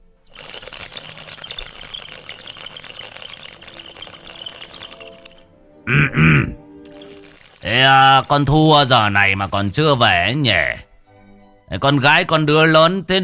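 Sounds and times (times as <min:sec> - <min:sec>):
bamboo tobacco water pipe bubbling: 0:00.0 - 0:05.5, 0:06.8 - 0:10.2
speech: 0:07.7 - 0:10.9, 0:11.7 - 0:13.2.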